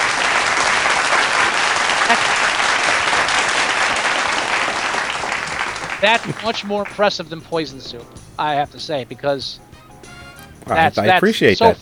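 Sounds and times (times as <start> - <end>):
audience applause: 0.0 - 8.0
laughter: 0.3 - 9.5, 10.7 - 11.8
speech: 6.0 - 9.7, 10.7 - 11.8.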